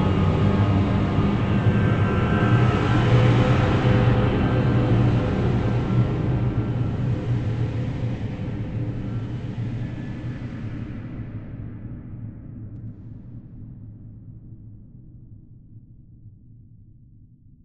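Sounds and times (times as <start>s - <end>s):
haunting drone: 0.0s - 11.8s.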